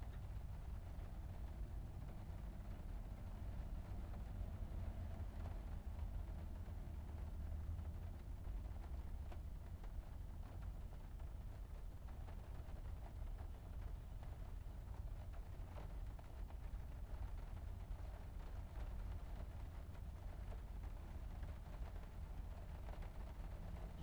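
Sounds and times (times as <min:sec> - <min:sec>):
rain heard from inside a car: 0:00.0 - 0:24.0.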